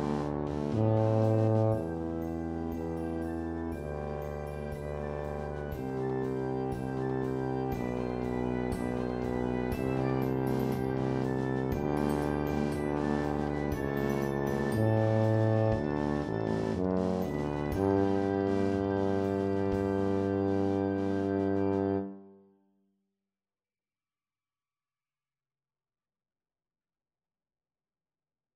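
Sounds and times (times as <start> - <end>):
tuba in E flat: 0.0 - 22.4.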